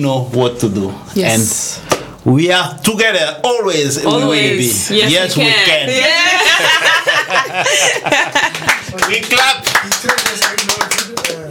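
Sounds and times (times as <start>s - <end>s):
speech: 0.0s - 11.3s
laughter: 5.9s - 9.6s
people clapping hands: 7.8s - 11.4s.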